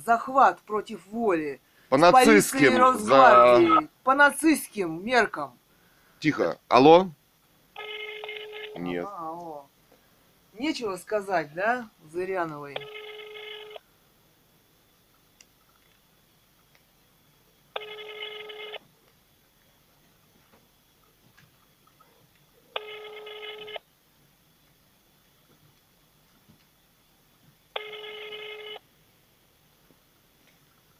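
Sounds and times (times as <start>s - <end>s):
speech: 0.1s - 5.6s, 6.2s - 7.2s, 8.8s - 9.5s, 10.6s - 13.0s
unanswered telephone ringback tone: 2.2s - 3.9s, 7.8s - 9.0s, 12.7s - 13.8s, 17.8s - 18.8s, 22.8s - 23.8s, 27.8s - 28.8s.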